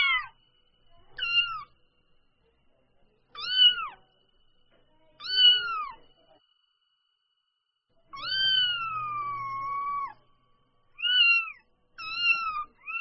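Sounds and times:
domestic cat kitten mewing: 0:01.2 - 0:01.7, 0:03.4 - 0:04.0, 0:08.1 - 0:10.2, 0:11.0 - 0:12.9.

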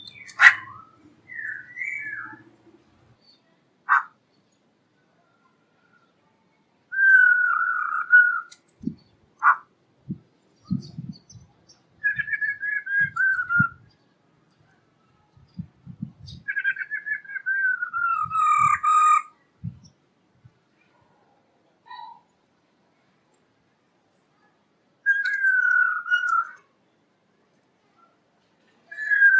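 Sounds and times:
black-throated laughingthrush song of whistles and a harsh burst: 0:00.0 - 0:02.5, 0:06.9 - 0:08.6, 0:12.0 - 0:13.8, 0:16.3 - 0:19.3, 0:25.0 - 0:26.6, 0:28.9 - 0:29.3.

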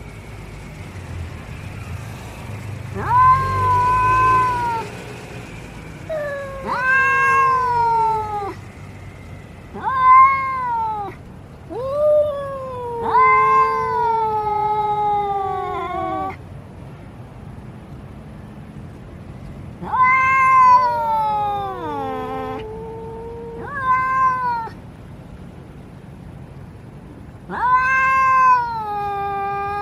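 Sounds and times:
domestic cat meowing: 0:02.9 - 0:04.9, 0:06.0 - 0:08.6, 0:09.7 - 0:16.4, 0:19.8 - 0:24.8, 0:27.5 - 0:29.7.

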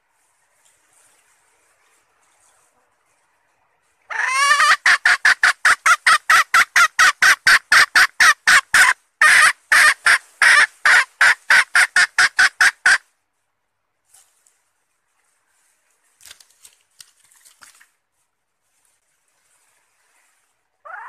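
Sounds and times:
red junglefowl hen cackling: 0:04.1 - 0:13.1, 0:20.8 - 0:21.0.

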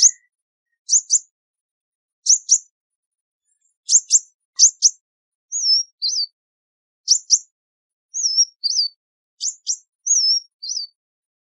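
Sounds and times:
sunbird calling: 0:00.0 - 0:01.3, 0:03.9 - 0:06.4, 0:08.1 - 0:11.0.

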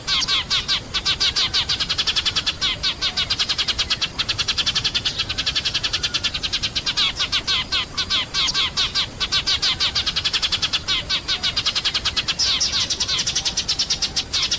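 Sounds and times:
sparrow chattering rattle: 0:00.1 - 0:14.5.

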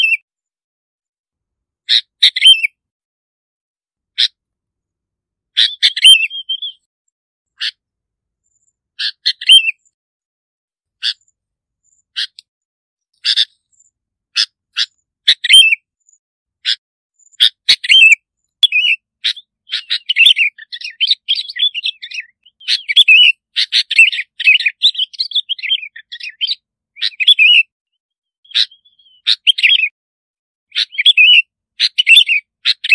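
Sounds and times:
bulbul singing: 0:00.0 - 0:00.3, 0:01.9 - 0:02.8, 0:05.6 - 0:06.9, 0:08.4 - 0:10.0, 0:13.1 - 0:15.8, 0:16.7 - 0:30.0, 0:30.7 - 0:32.9.

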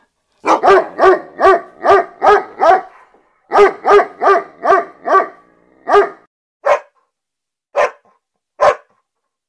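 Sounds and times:
German Shepherd barking: 0:00.4 - 0:07.0, 0:07.7 - 0:09.0.

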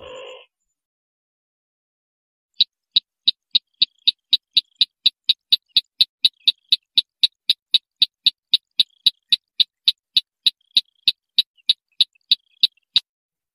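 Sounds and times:
white-breasted waterhen train of sharp clicks: 0:02.6 - 0:13.0.

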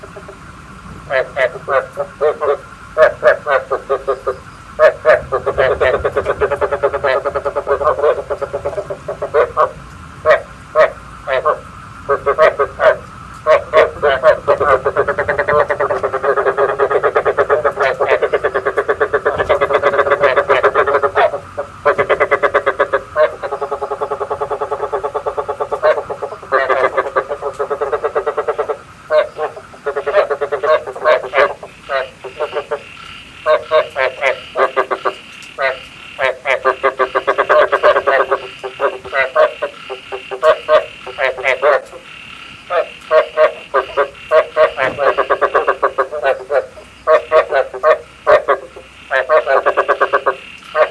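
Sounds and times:
frog chorus of rattling croaks: 0:00.0 - 0:50.8.

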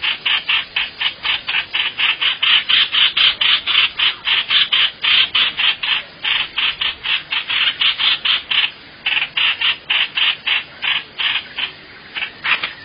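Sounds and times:
bird rasping calls: 0:00.0 - 0:12.8.

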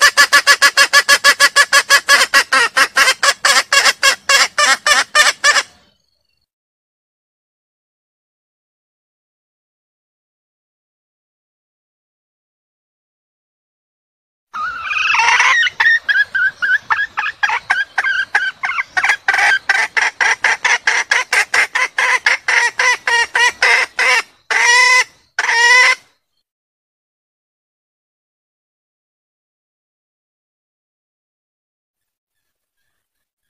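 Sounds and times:
junglefowl clucking: 0:00.0 - 0:05.8, 0:14.6 - 0:26.0.

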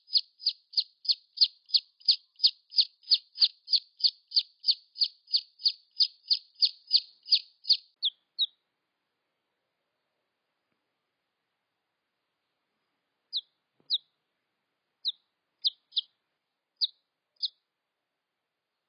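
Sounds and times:
red junglefowl chick peeps: 0:00.0 - 0:08.6, 0:13.3 - 0:14.1, 0:15.0 - 0:16.1, 0:16.8 - 0:17.6.

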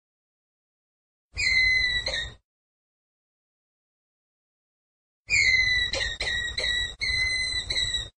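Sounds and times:
ground squirrel whistled call: 0:01.4 - 0:02.4, 0:05.3 - 0:08.1.

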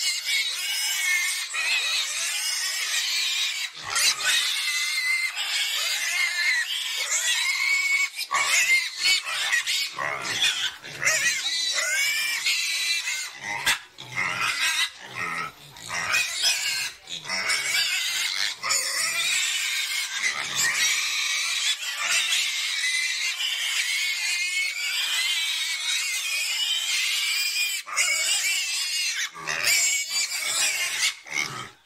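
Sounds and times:
pig squealing: 0:00.0 - 0:31.8.

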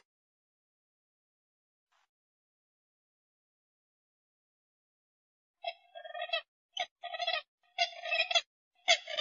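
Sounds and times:
grey-headed swamphen calls: 0:05.7 - 0:09.1.

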